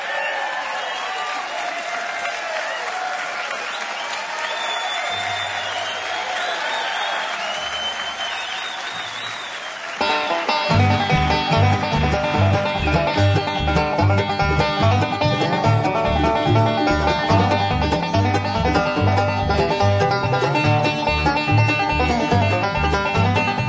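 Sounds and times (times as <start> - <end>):
audience applause welcoming a band on stage: 0.0 - 20.5
band playing: 10.0 - 23.6.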